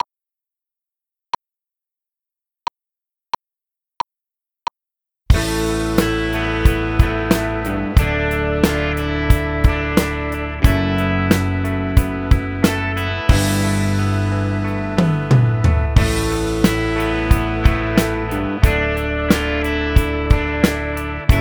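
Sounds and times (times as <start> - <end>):
drums: 5.3 - 21.4.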